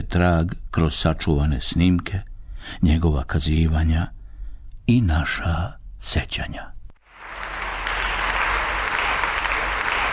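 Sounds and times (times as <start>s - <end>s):
speech: 0.1s - 4.2s, 4.9s - 6.8s
applause for a bowing pianist at a recital: 7.0s - 10.1s.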